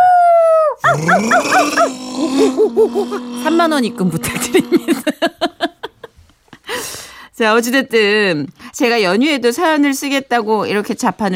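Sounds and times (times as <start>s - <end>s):
person imitating dog howling: 0.0s - 5.1s
speech: 0.9s - 5.4s, 7.4s - 11.3s
laughter: 4.0s - 6.2s.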